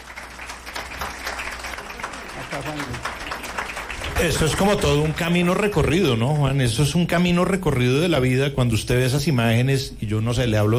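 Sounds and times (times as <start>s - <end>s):
applause: 0.0s - 7.0s
speech: 2.6s - 3.3s, 4.2s - 10.7s.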